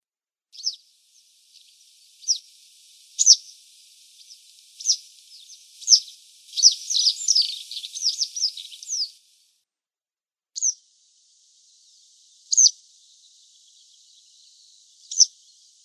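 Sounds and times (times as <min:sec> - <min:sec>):
citrine wagtail calls: 0:00.6 - 0:09.3.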